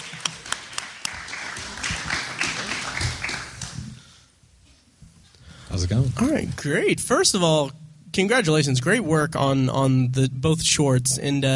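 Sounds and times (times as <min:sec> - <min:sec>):
audience applause: 0:00.0 - 0:04.0
speech: 0:05.8 - 0:11.5.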